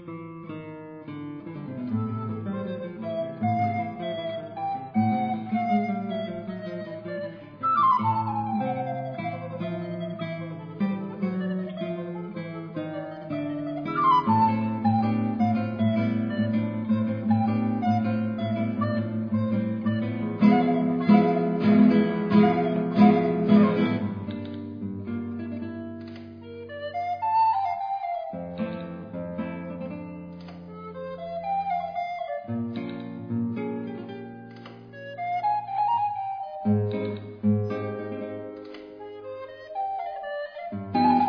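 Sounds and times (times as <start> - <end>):
tango music: 1.9 - 41.2.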